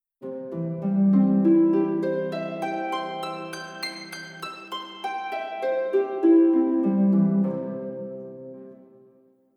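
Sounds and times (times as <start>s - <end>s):
harp: 0.2s - 9.2s.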